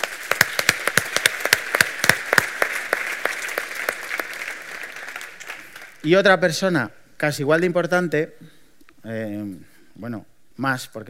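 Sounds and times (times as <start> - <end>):
audience applause: 0.0 - 6.0
speech: 6.0 - 11.0.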